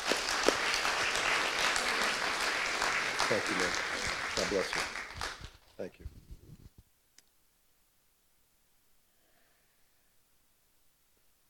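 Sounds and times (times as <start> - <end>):
crowd applauding: 0.0 - 5.6
speech: 3.3 - 5.0, 5.8 - 6.2.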